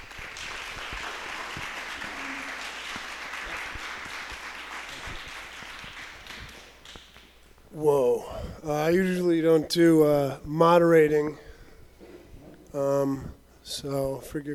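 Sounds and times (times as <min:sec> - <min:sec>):
audience applause: 0:00.0 - 0:07.2
speech: 0:07.8 - 0:11.4, 0:12.7 - 0:14.5.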